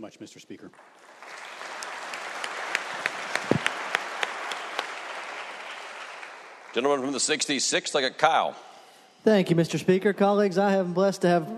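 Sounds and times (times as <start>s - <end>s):
speech: 0.0s - 1.4s, 6.8s - 11.5s
round of applause: 0.7s - 7.4s.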